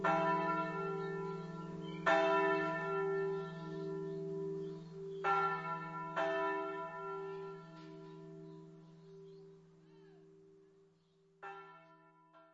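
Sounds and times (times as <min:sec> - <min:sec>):
bells ringing at sunset: 0:00.0 - 0:09.3.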